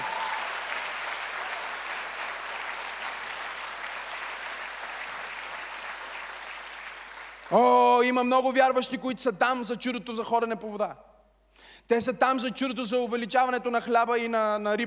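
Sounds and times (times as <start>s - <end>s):
audience applauding: 0.0s - 7.6s
speech: 7.5s - 11.1s, 11.8s - 14.8s.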